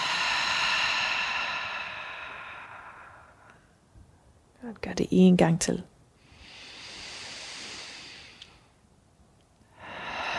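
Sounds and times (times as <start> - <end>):
deep breath during a guided floor stretching exercise: 0.0 - 3.8, 6.2 - 8.8, 9.6 - 10.3
speech: 4.6 - 5.9.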